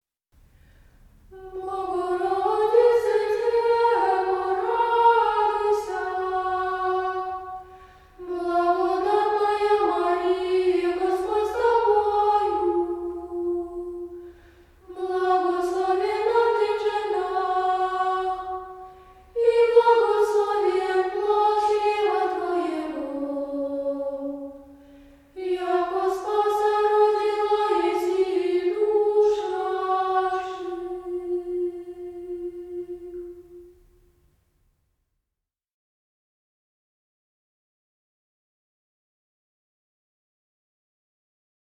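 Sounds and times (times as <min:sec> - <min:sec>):
children's ensemble singing znamenny chant troparion at vespers: 0:01.3 - 0:33.7.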